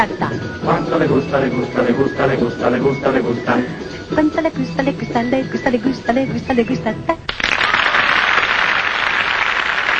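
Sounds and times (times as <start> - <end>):
speech: 0.0 - 7.6
audience applause after song: 7.3 - 9.9.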